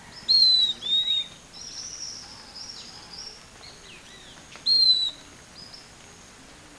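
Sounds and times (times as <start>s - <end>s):
bird calls with thin high whistles: 0.3s - 1.3s, 4.7s - 5.2s.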